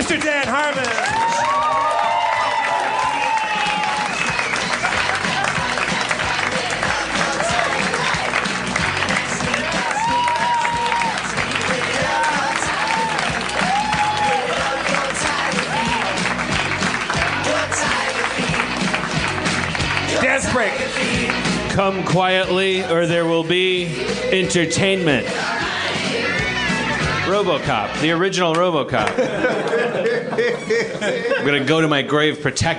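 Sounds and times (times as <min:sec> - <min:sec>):
audience applause and cheering: 0:00.0 - 0:21.8, 0:25.2 - 0:27.2
speech: 0:00.1 - 0:01.6, 0:20.6 - 0:25.6, 0:27.3 - 0:32.7
laughter: 0:04.4 - 0:08.0, 0:29.0 - 0:31.7.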